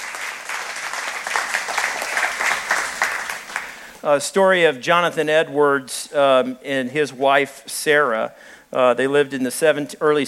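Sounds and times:
audience applause: 0:00.0 - 0:03.8
speech: 0:04.0 - 0:10.2.

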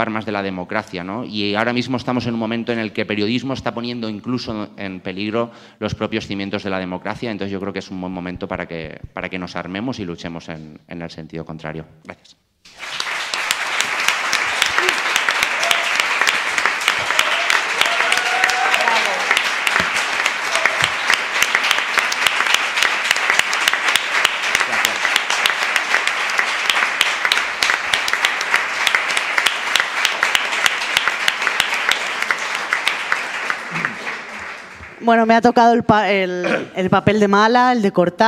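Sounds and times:
speech: 0:00.0 - 0:13.0, 0:35.1 - 0:38.2
audience applause: 0:12.7 - 0:35.3.

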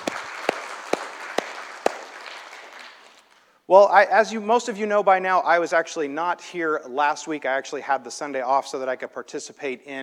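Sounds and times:
audience applause: 0:00.0 - 0:03.3
loud single claps: 0:00.0 - 0:03.4
speech: 0:03.7 - 0:10.0.

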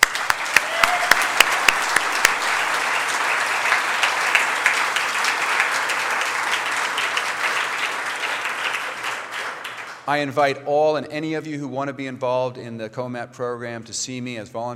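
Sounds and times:
audience applause: 0:00.0 - 0:10.1
speech: 0:10.1 - 0:14.7.

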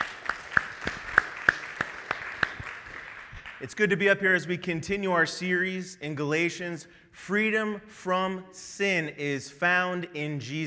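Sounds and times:
audience applause: 0:00.0 - 0:03.7
speech: 0:03.6 - 0:10.6.

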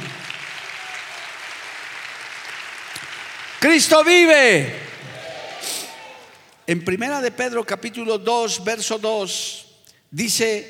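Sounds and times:
audience applause: 0:00.0 - 0:06.5
speech: 0:03.6 - 0:04.8, 0:06.7 - 0:10.6.

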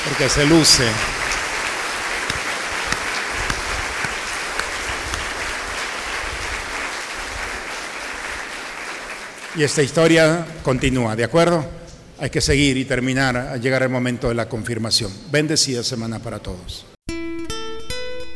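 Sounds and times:
audience applause: 0:00.0 - 0:09.6
speech: 0:00.1 - 0:01.3, 0:09.6 - 0:16.9.

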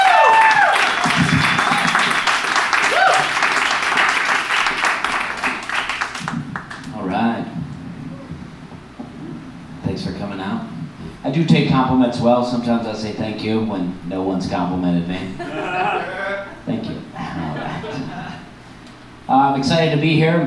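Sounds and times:
crowd cheers and whoops: 0:00.0 - 0:07.0, 0:15.4 - 0:16.6
audience applause for comedian: 0:00.0 - 0:07.1
speech: 0:11.4 - 0:15.6, 0:19.5 - 0:20.4
laughter: 0:15.2 - 0:16.6, 0:17.2 - 0:18.5.

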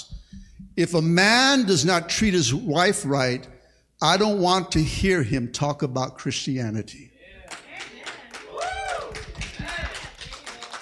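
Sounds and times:
speech: 0:00.8 - 0:07.1
wives clapping: 0:07.4 - 0:10.7.

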